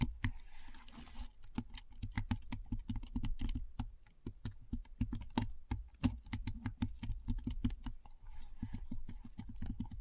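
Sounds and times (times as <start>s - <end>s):
fast keyboard typing: 1.4s - 9.9s.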